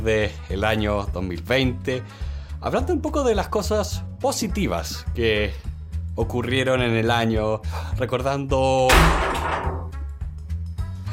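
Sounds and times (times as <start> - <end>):
speech: 0.0 - 9.8
door slammed shut by the wind: 8.9 - 10.0
soft knocks and rattles: 8.9 - 10.0.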